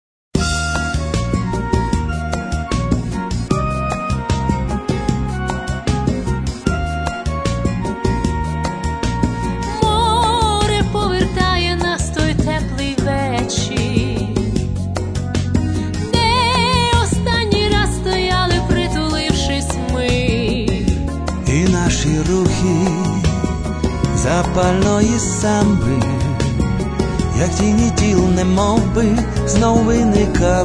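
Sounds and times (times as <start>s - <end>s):
samba music: 0.4s - 30.6s.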